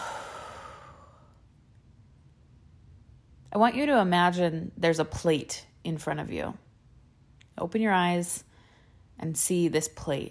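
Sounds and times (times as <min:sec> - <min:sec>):
deep breath exhaled during a guided relaxation exercise: 0:00.0 - 0:01.4
speech: 0:03.5 - 0:06.6, 0:07.6 - 0:08.5, 0:09.2 - 0:10.3.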